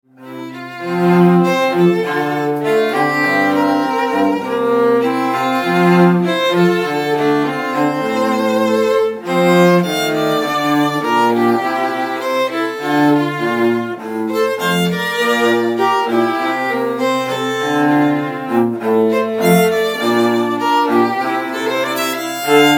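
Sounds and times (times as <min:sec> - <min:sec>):
musical trio: 0:00.1 - 0:22.7.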